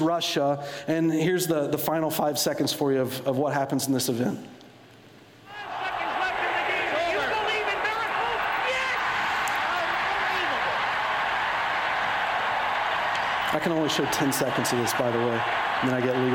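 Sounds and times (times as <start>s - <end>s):
speech: 0.0s - 4.6s, 13.6s - 16.3s
large arena crowd roaring and shouting: 5.5s - 16.3s.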